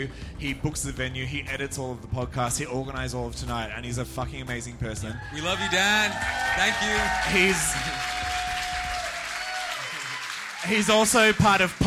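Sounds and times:
speech: 0.0 - 8.2, 10.6 - 11.8
live audience applause: 5.3 - 11.8.

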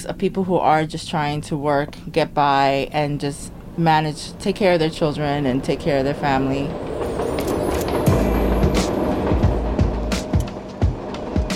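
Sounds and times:
speech: 0.1 - 6.9
subway train rattling past overhead: 3.3 - 11.5.

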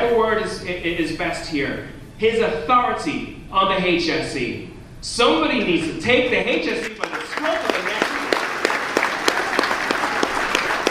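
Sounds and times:
speech: 0.1 - 7.9
applause from several hundred people: 6.8 - 10.8.

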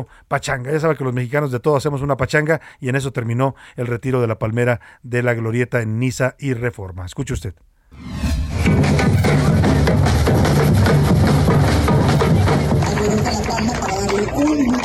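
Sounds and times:
speech: 0.0 - 9.2
music: 8.0 - 14.8
crowd applauding farewell to palm tree: 9.7 - 14.8.

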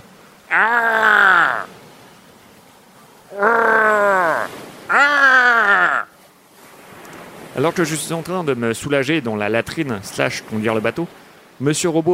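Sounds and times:
speech: 0.5 - 1.0, 7.6 - 12.1
agonized cries and groans of pain: 0.5 - 1.7, 3.3 - 6.1.

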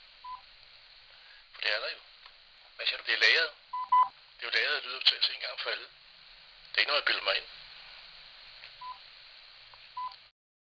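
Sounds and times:
speech: 1.7 - 2.1, 2.8 - 6.0, 6.7 - 7.6
energy meter beeping: 3.8 - 4.1.

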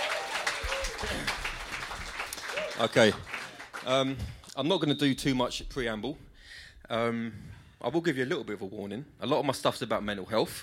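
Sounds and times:
audience applause for the opening act at a live gig: 0.0 - 4.2
speech: 2.8 - 6.3, 6.9 - 10.6.

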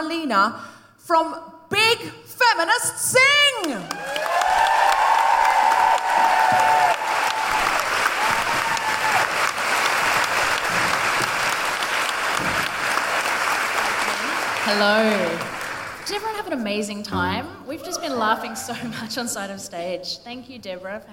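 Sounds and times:
speech: 0.0 - 4.4, 14.7 - 21.1
audience cheers and whoops: 3.8 - 9.6
audience applause welcoming singers from a feminist singing workshop: 3.8 - 16.3.

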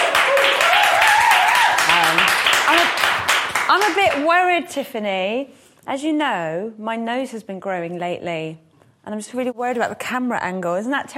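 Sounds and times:
audience applause: 0.0 - 4.2
speech: 3.7 - 11.1.

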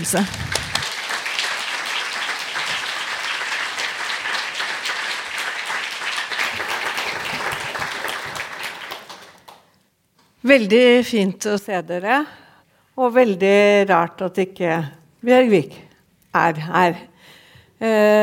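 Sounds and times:
speech: 0.0 - 0.4, 10.5 - 12.4, 13.0 - 15.8, 16.4 - 17.1, 17.8 - 18.2
audience applause welcoming speaker to stage: 0.0 - 9.6.

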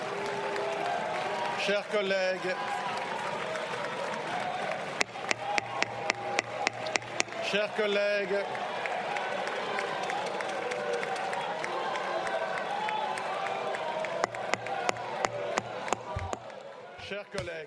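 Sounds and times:
booing and shouting in parliament chamber: 0.0 - 17.3
speech: 1.6 - 2.9, 7.5 - 8.7
sharp scattered claps: 3.0 - 16.6.

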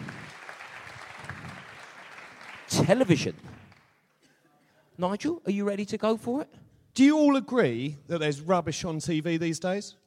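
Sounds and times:
audience applause at a pun championship: 0.0 - 4.0
speech: 2.7 - 3.6, 5.0 - 10.0.

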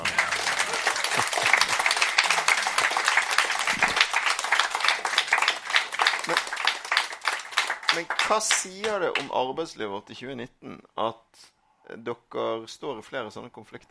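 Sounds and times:
audience applause: 0.0 - 9.0
speech: 8.0 - 13.8.

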